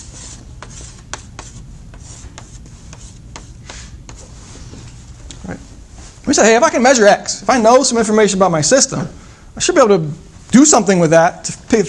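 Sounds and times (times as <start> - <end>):
scratchy drawing of a diagram on a board: 0.0 - 4.3
speech: 5.5 - 5.7, 6.3 - 11.8.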